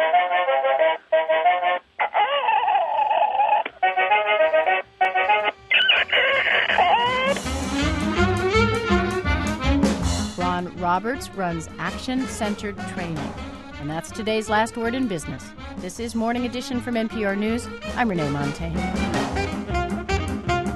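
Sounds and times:
music: 0:00.0 - 0:02.4, 0:03.0 - 0:20.7
squeezed rubber chicken toy squawking: 0:01.3 - 0:07.4
speech: 0:11.0 - 0:19.7.

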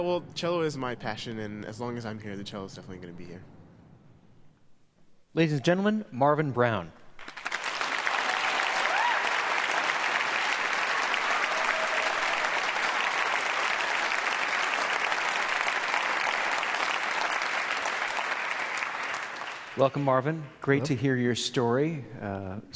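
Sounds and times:
speech: 0:00.0 - 0:03.6, 0:05.3 - 0:07.0, 0:19.8 - 0:22.7
audience applause: 0:07.2 - 0:20.1.

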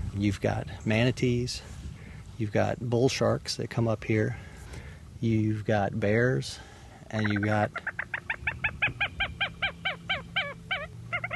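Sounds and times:
low constant hum: 0:00.0 - 0:11.3
speech: 0:00.2 - 0:01.8, 0:02.4 - 0:04.5, 0:05.2 - 0:08.0
marsh hen (clapper rail) calling harsh clattering notes: 0:07.2 - 0:11.3.

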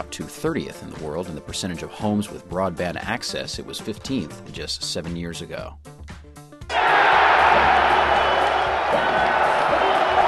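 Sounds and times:
speech: 0:00.0 - 0:06.0
basketball arena crowd cheering: 0:06.7 - 0:10.2.

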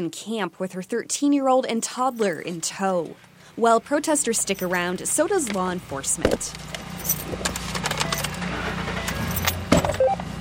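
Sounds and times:
speech: 0:00.0 - 0:07.5
truck engine hum: 0:02.2 - 0:10.3
keys jangling: 0:04.4 - 0:04.9, 0:06.9 - 0:07.5.

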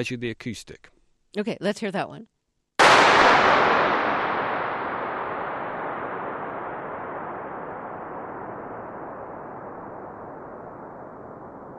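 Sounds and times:
speech: 0:00.0 - 0:02.3
starting pistol shot echoing in concrete hall: 0:02.8 - 0:11.7.

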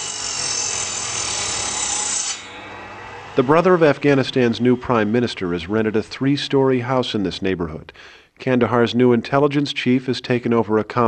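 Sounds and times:
carpenter's power saw cutting window frames: 0:00.0 - 0:06.6
speech: 0:03.4 - 0:11.0.

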